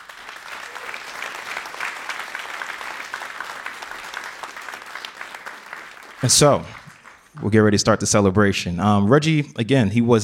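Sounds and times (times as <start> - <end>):
audience applause: 0.0 - 7.7
speech: 6.2 - 6.8, 7.4 - 10.2.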